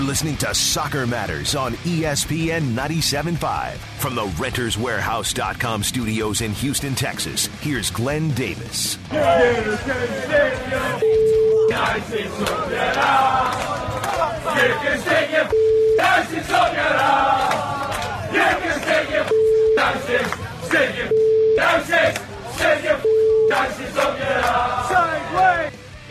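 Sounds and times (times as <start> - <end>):
speech: 0.1 - 17.8, 18.3 - 25.5
cheering Manchester United soccer fans: 9.1 - 25.8
beeps: 11.0 - 11.9, 15.5 - 16.3, 19.3 - 20.0, 21.1 - 21.8, 23.0 - 23.8.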